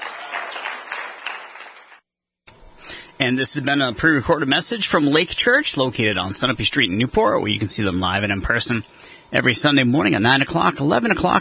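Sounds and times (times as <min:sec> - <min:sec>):
crowd clapping loudly: 0:00.0 - 0:02.0
speech: 0:03.2 - 0:11.3.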